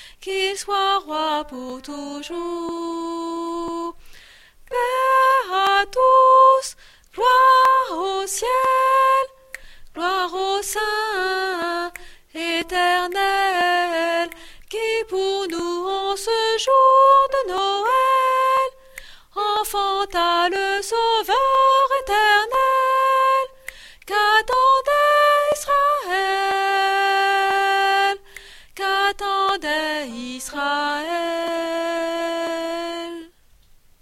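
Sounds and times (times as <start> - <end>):
tenor voice singing a Christmas carol part: 0.2 - 4.0, 4.6 - 33.3.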